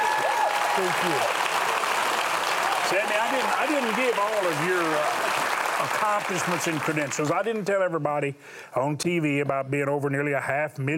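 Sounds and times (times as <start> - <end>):
studio audience on a faith-themed TV show applauding a guest: 0.0 - 7.7
speech: 0.8 - 1.4, 2.9 - 10.9.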